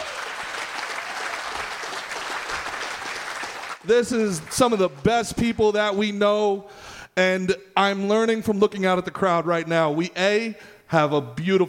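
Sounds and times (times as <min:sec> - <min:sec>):
audience applause: 0:00.0 - 0:05.0
speech: 0:03.9 - 0:11.6.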